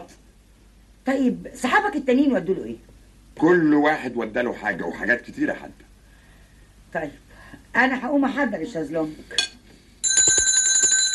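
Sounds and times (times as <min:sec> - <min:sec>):
speech: 0:01.0 - 0:05.9, 0:06.9 - 0:09.6
bell ringing: 0:10.0 - 0:11.1.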